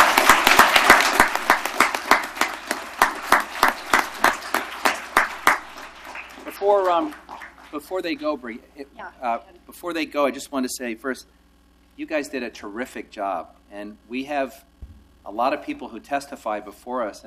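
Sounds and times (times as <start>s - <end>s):
audience applause: 0.0s - 7.8s
speech: 6.9s - 11.4s, 12.0s - 17.2s.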